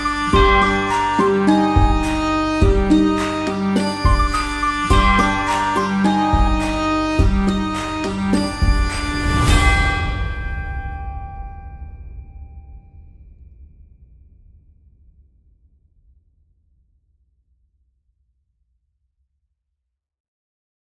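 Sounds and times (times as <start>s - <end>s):
medieval bardcore version of a song: 0.0s - 11.8s.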